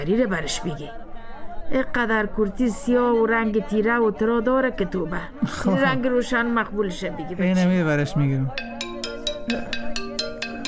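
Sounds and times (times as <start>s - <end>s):
speech: 0.0s - 1.0s, 1.7s - 8.7s, 9.5s - 9.8s
mobile phone ringtone: 8.5s - 10.6s.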